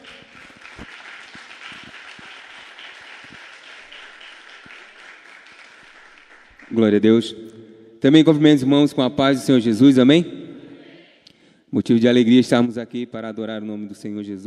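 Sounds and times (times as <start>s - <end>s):
audience applauding: 0.0s - 7.0s
speech: 6.7s - 10.4s, 11.8s - 14.4s.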